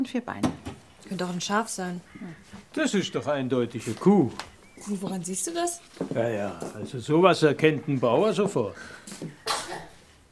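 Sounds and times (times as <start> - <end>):
speech: 0.0 - 9.4
person sneezing: 9.4 - 10.0.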